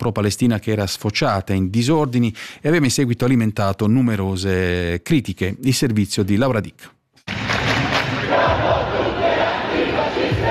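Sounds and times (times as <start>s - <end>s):
speech: 0.0s - 7.0s
dense protest crowd chanting slogans: 8.0s - 10.4s.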